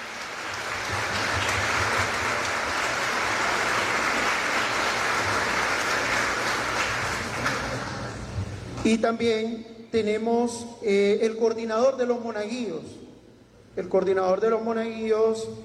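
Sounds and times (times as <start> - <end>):
audience applause: 0.0 - 8.3
speech: 8.8 - 13.0, 13.8 - 15.6.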